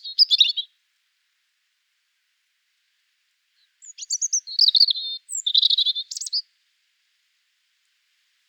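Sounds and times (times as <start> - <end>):
European robin Erithacus rubecula singing tinkling warbled notes and trills: 0.0 - 0.7, 3.6 - 6.4.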